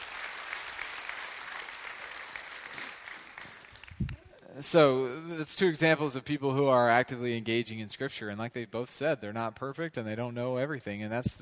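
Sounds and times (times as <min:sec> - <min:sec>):
crowd clapping: 0:00.0 - 0:04.4
speech: 0:04.6 - 0:11.4.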